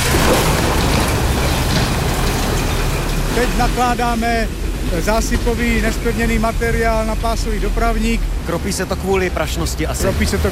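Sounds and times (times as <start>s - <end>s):
mine waste rock falling down a nearly kilometre-deep shaft: 0.0s - 6.8s
speech: 3.4s - 10.4s.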